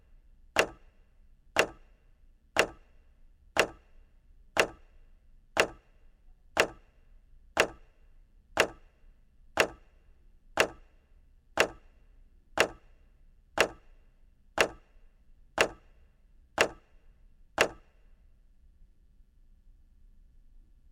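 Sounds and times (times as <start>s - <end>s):
clock: 0.6s - 0.9s, 1.6s - 1.9s, 2.6s - 2.9s, 3.6s - 3.9s, 4.6s - 4.9s, 5.6s - 5.9s, 6.6s - 6.9s, 7.6s - 7.9s, 8.6s - 8.9s, 9.6s - 9.9s, 10.6s - 10.9s, 11.6s - 11.9s, 12.6s - 12.9s, 13.6s - 13.9s, 14.6s - 14.9s, 15.6s - 15.9s, 16.6s - 16.9s, 17.6s - 17.8s.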